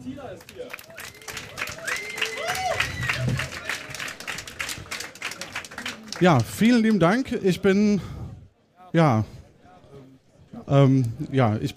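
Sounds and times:
audience applause: 0.4 - 6.7
speech: 6.2 - 8.2, 8.9 - 9.4, 10.7 - 11.7.

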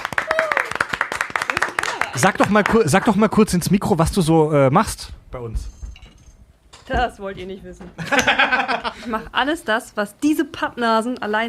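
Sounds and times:
applause: 0.0 - 3.4
voices cheering and calling out: 0.2 - 0.8
speech: 2.2 - 5.7, 6.9 - 11.4
laughter: 8.0 - 9.3.

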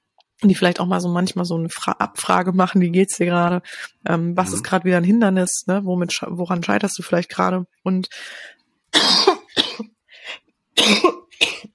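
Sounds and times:
speech: 0.4 - 9.9, 10.8 - 11.2
person coughing: 4.4 - 4.7, 9.0 - 9.9, 10.8 - 11.7
throat clearing: 4.4 - 4.7.

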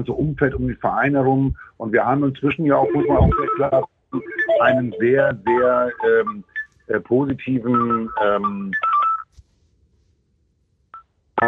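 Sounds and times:
laughter: 0.0 - 3.8, 4.6 - 8.8
speech: 0.0 - 8.9
telephone ringing: 2.8 - 6.2.

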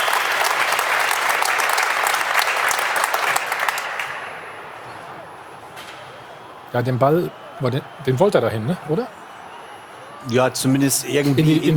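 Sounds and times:
football fans cheering and clapping: 0.0 - 11.7
speech: 6.7 - 9.2, 10.2 - 11.7.

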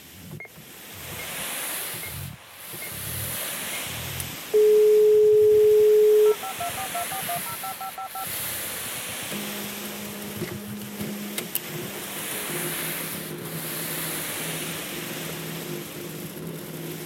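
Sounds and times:
constant noisy hiss and low rumbling: 0.0 - 17.0
fax machine tones: 4.6 - 8.4.

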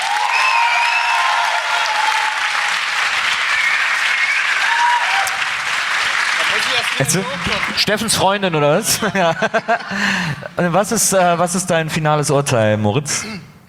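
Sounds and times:
cheers and whistles: 0.0 - 5.5
audience applause: 0.0 - 8.4
speech: 6.9 - 13.5
laughter: 8.8 - 10.6.

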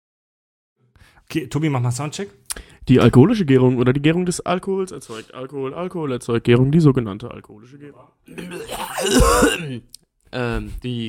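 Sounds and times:
speech: 1.0 - 11.0
coughing: 8.3 - 9.9
throat clearing: 8.3 - 9.9.

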